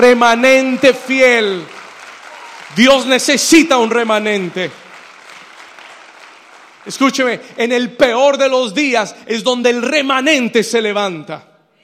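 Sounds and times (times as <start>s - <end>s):
speech: 0.0s - 1.8s, 2.7s - 4.8s, 6.8s - 11.5s
audience applauding: 0.0s - 7.9s.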